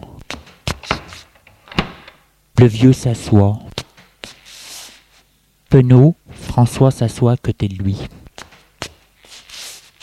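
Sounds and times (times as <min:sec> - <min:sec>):
door slamming shut: 0:01.7 - 0:02.2
speech: 0:02.6 - 0:03.7, 0:05.8 - 0:08.2.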